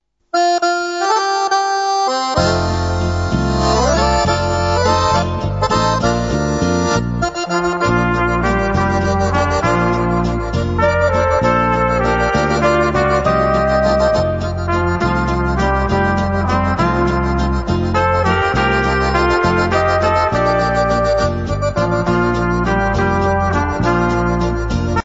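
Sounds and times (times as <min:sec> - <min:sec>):
waltz music: 0:00.4 - 0:25.0.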